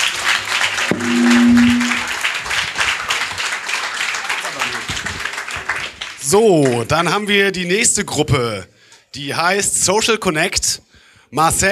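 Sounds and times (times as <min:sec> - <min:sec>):
audience applause: 0:00.0 - 0:06.8
speech: 0:06.3 - 0:11.6.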